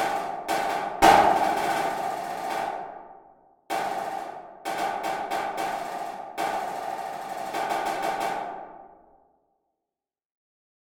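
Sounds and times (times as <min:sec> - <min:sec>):
snare drum: 0:00.0 - 0:02.9, 0:03.7 - 0:08.8.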